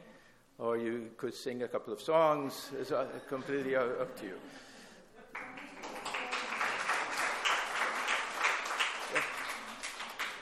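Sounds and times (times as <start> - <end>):
speech: 0.6 - 4.7
audience applauding: 5.3 - 10.3.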